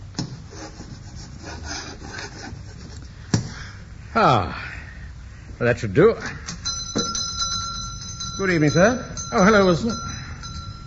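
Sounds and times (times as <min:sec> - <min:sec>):
chalk scratching on a blackboard: 0:00.4 - 0:03.1
speech: 0:04.2 - 0:04.7, 0:05.6 - 0:06.4, 0:08.4 - 0:10.1.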